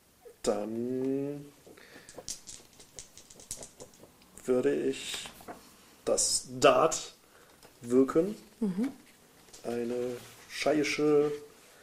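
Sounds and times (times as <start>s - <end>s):
speech: 0.4s - 1.6s, 4.5s - 5.3s, 6.1s - 7.2s, 7.8s - 9.0s, 9.6s - 11.5s
dice rattling and clattering rolled for a magic skill check in a tabletop role-playing game: 2.0s - 4.1s.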